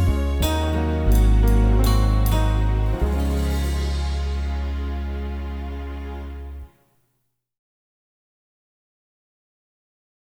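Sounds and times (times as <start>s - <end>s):
melody: 0.0s - 6.7s.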